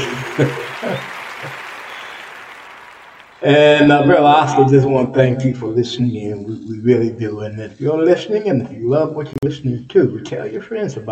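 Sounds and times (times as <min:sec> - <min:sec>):
crowd applause: 0:00.0 - 0:04.2
speech: 0:00.4 - 0:01.6, 0:03.4 - 0:11.0.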